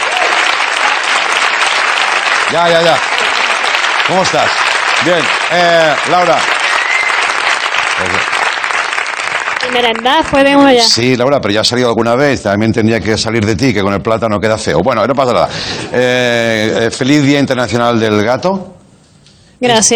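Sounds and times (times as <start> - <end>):
audience applause: 0.0 - 10.8
speech: 2.5 - 3.1, 4.1 - 6.5, 8.0 - 8.3, 9.6 - 18.8, 19.6 - 19.9.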